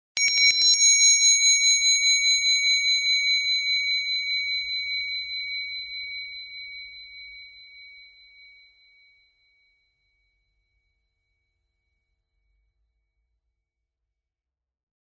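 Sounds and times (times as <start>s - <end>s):
bell: 0.1s - 11.7s.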